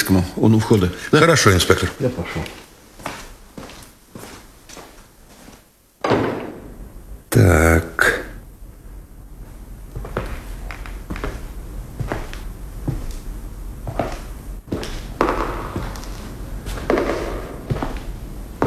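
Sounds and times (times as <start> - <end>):
speech: 0.0 - 2.6
echoing footsteps: 2.3 - 7.1, 9.9 - 18.6.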